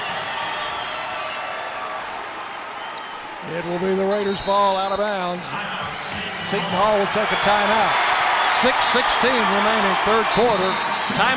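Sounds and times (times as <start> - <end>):
basketball arena crowd cheering: 0.0 - 11.3
speech: 3.4 - 11.3.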